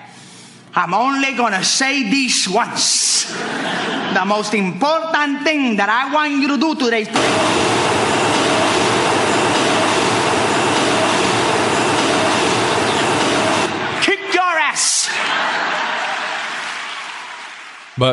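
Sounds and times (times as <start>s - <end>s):
speech: 0.8s - 7.8s, 18.0s - 18.1s
laughter: 3.1s - 4.7s, 14.8s - 17.8s
subway train passing by: 7.2s - 14.0s.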